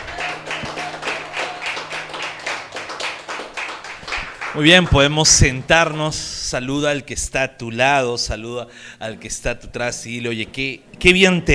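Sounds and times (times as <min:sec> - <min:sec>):
audience clapping in rhythm: 0:00.0 - 0:05.4
speech: 0:04.6 - 0:11.5.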